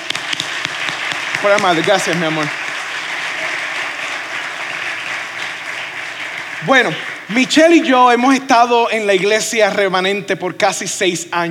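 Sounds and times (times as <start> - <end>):
audience applause: 0.0 - 8.0
speech: 1.4 - 2.6, 6.6 - 11.4.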